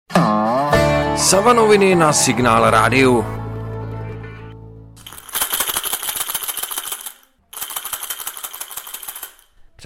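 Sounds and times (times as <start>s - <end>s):
speech: 1.2s - 3.4s
rattling ball used in blind football: 5.0s - 9.6s.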